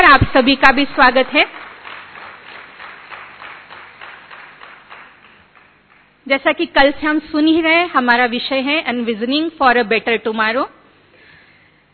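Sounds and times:
speech: 0:00.1 - 0:01.7, 0:06.3 - 0:10.8
crowd applauding: 0:00.1 - 0:06.2.

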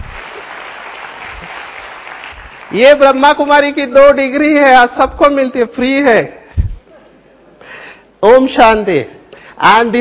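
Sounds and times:
audience clapping at a Brahma Kumaris spiritual talk: 0:00.0 - 0:03.4
speech: 0:02.7 - 0:06.4, 0:08.2 - 0:09.9.

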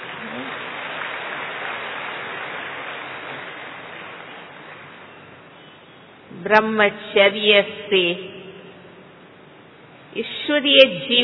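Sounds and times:
audience clapping at a spiritual gathering: 0:00.0 - 0:05.6
speech: 0:06.4 - 0:08.3, 0:10.5 - 0:11.2.

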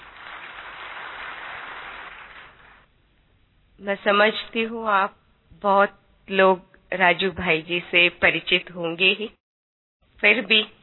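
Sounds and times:
audience applause welcoming an honoured guest: 0:00.0 - 0:02.8
speech: 0:03.8 - 0:09.4, 0:10.2 - 0:10.8.

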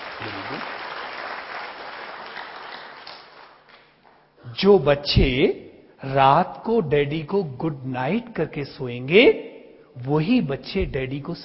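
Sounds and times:
seated children clapping for themselves: 0:00.0 - 0:04.2
speech: 0:04.6 - 0:11.4.

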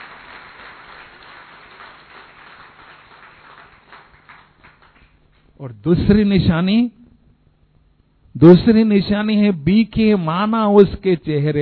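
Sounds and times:
audience clapping: 0:00.0 - 0:05.5
speech: 0:05.6 - 0:07.0, 0:08.4 - 0:11.6.

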